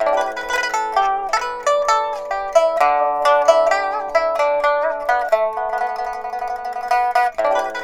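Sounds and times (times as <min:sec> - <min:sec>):
pipa playing at 90: 0:00.0 - 0:07.8.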